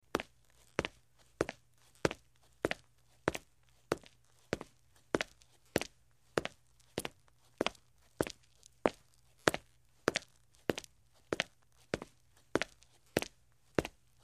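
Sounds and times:
footsteps on concrete: 0.1 - 14.2.

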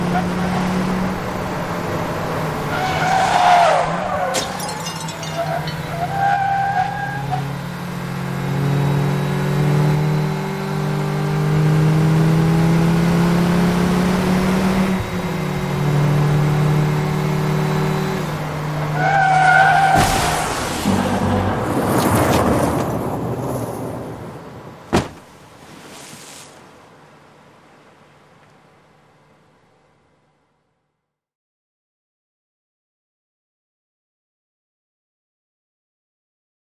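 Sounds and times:
two vehicles driving at high speed: 0.0 - 29.4
vehicles broadsiding each other off road: 2.6 - 7.9, 18.8 - 25.8
vehicle knocked off road into water: 19.3 - 23.0.

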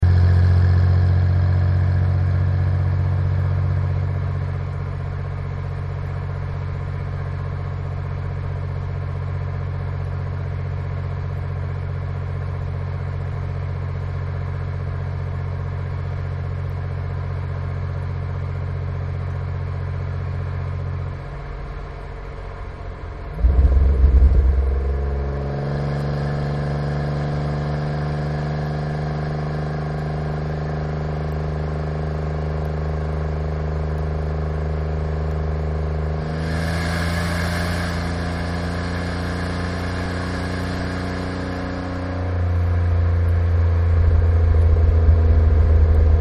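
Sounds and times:
Chevy V-6 engine idling and accelerating: 0.0 - 46.1.

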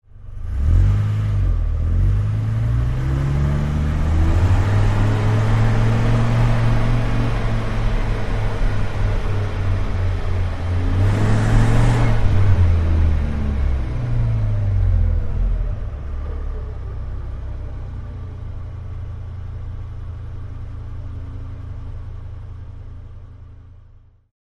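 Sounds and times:
Dodge Ram driving fast: 0.4 - 18.7.

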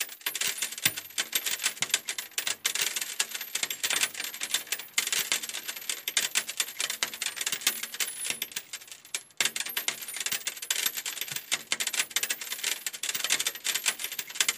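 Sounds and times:
multiple steel shell casings moving: 0.2 - 14.4.

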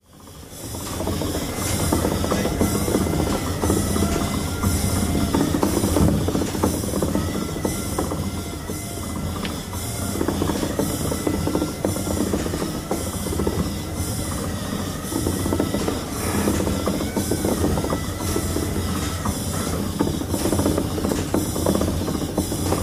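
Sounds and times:
metallic machine rumble: 0.0 - 22.8
pneumatic whine: 0.0 - 22.8
small steam pump: 0.0 - 22.8.

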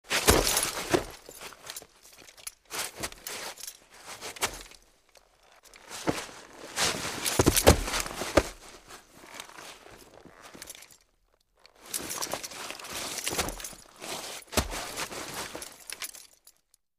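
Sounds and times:
body crawling with gear: 0.0 - 16.7
body falls: 0.1 - 1.4, 5.9 - 9.0, 12.1 - 16.0.

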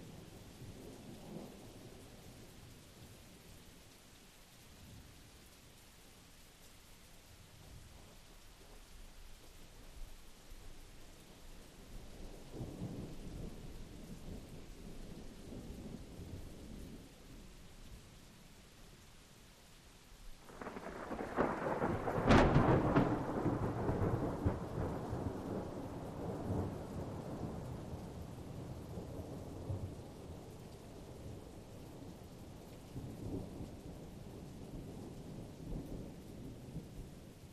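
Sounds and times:
rain at Blue Mountain Lake Adirondacks New York: 0.0 - 37.5
continuous thunder at Blue Mountain Lake Adirondacks New York: 11.7 - 18.1, 20.4 - 37.5.

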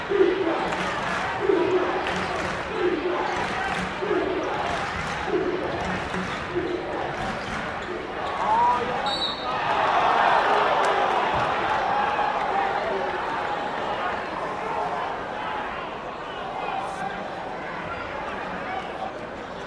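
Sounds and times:
gym crowd cheering: 0.0 - 19.6.

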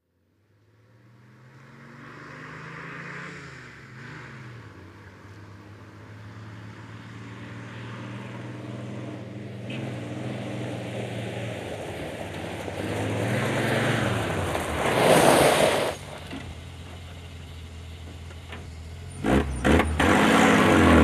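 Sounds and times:
Dodge Power Wagon fire truck driving, stopping on gravel, revving: 4.7 - 21.0.

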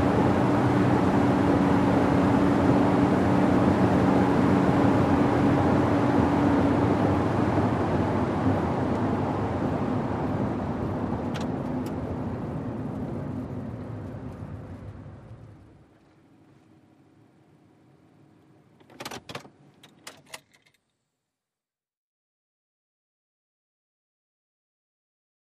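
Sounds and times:
SUV driving at 100 mph: 0.0 - 16.6.

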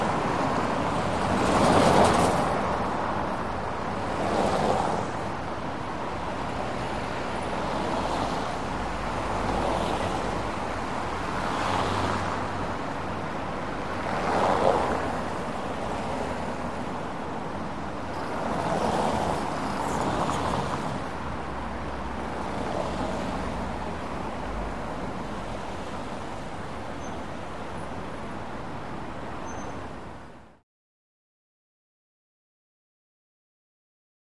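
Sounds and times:
close medium traffic: 0.0 - 30.6.

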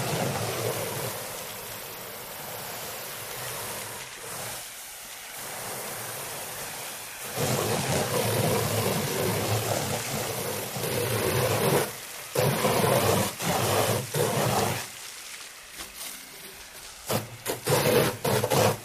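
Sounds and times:
fire hose spraying: 0.0 - 18.8.

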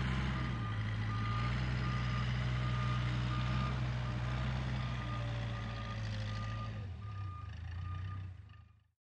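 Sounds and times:
John Deere 750 dozer beeps: 0.0 - 8.9.

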